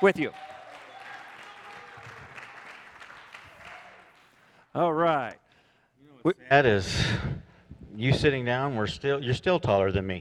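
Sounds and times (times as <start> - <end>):
speech: 0.0 - 0.5, 4.7 - 5.4, 6.2 - 7.4, 8.0 - 10.2
church audience applause welcoming a speaker on stage: 0.0 - 4.4.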